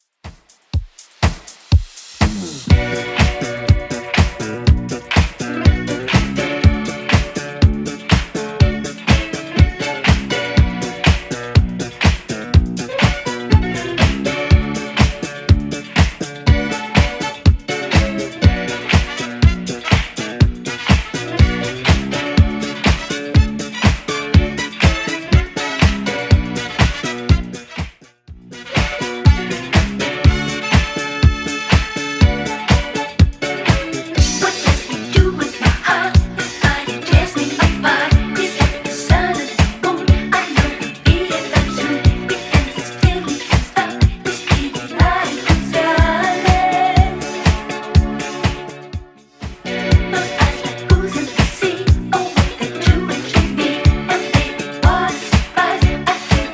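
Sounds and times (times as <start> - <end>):
70s-style electronic dance track: 0.0 - 56.5.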